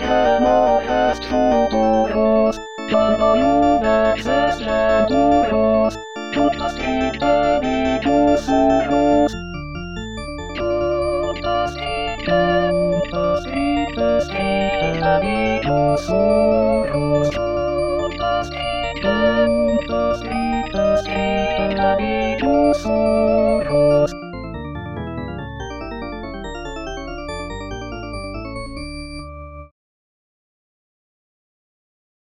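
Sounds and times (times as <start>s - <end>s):
choir singing: 0.0s - 9.3s, 10.7s - 24.1s.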